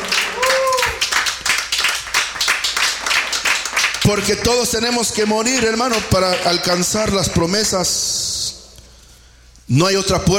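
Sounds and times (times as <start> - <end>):
audience clapping hands: 0.0 - 7.9
speech: 4.1 - 8.1, 9.7 - 10.3.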